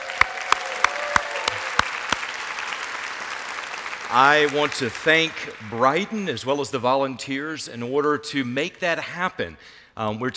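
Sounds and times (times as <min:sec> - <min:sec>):
sharp evenly spaced claps: 0:00.0 - 0:06.3
crowd applauding: 0:00.0 - 0:06.8
speech: 0:04.1 - 0:10.3.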